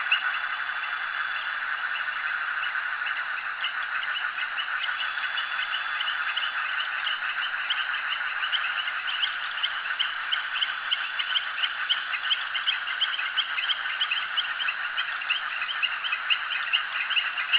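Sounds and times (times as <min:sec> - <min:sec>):
frogs calling at a jetty: 0:00.0 - 0:17.5.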